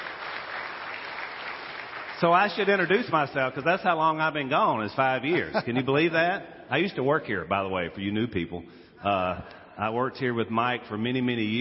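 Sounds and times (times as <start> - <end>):
crowd clapping: 0.0 - 3.3
speech: 2.2 - 11.6
laughter: 5.2 - 6.3.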